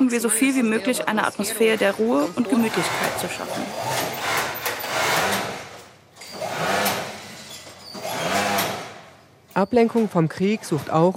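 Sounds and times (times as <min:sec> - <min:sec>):
speech: 0:00.1 - 0:04.2, 0:09.6 - 0:11.1
sewing machine stitching swim and fitness wear: 0:01.6 - 0:09.2.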